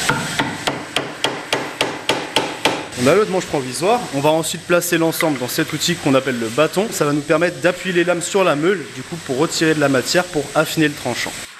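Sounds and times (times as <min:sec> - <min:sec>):
hammer driving a wooden wedge into a tenaillon at a cutlery museum in Thiers: 0:00.0 - 0:03.0
speech: 0:03.0 - 0:11.5.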